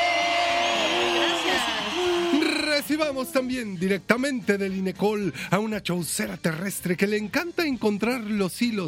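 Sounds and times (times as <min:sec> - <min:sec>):
audience applause: 0:00.2 - 0:02.9
speech: 0:02.9 - 0:08.8.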